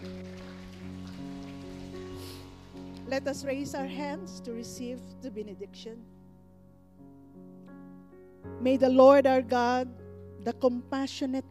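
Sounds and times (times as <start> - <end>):
audience clapping: 0.0 - 3.4
sustained keyboard chords: 0.0 - 11.4
speech: 3.1 - 6.2, 8.6 - 11.4.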